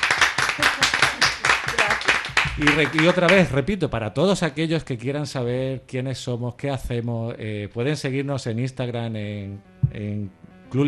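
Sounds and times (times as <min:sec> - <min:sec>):
literary club audience applause thanking a guest: 0:00.0 - 0:03.5
speech: 0:02.6 - 0:10.8.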